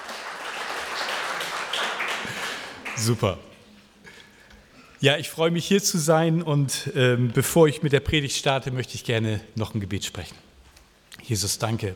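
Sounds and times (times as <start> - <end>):
audience applause: 0.0 - 3.3
speech: 3.0 - 3.5, 5.0 - 10.5, 11.2 - 11.9.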